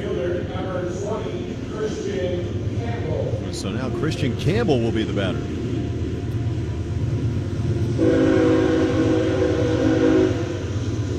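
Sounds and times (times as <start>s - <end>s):
rumble of rail traffic: 0.0s - 11.1s
speech: 3.6s - 5.6s
train horn outside the stadium: 7.9s - 10.9s.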